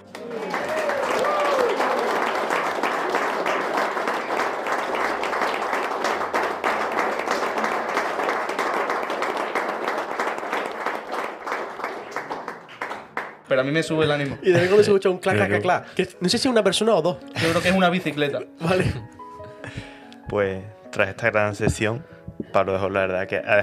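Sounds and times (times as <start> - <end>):
group of people applauding outside: 0.0 - 14.4
speech: 13.6 - 19.0, 20.3 - 23.6.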